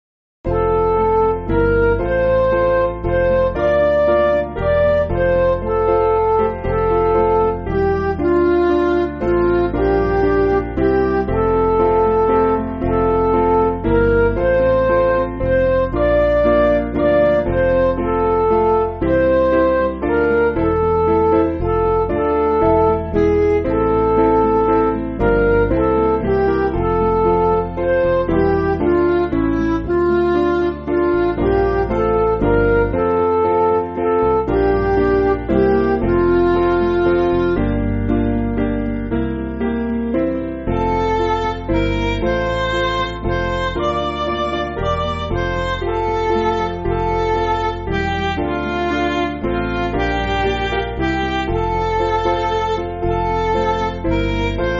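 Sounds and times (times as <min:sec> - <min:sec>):
MIDI backing music: 0:00.5 - 0:54.7.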